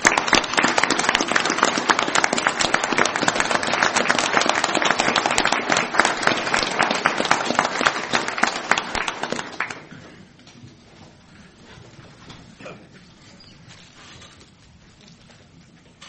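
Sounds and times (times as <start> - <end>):
round of applause at a meeting: 0.0 - 10.2.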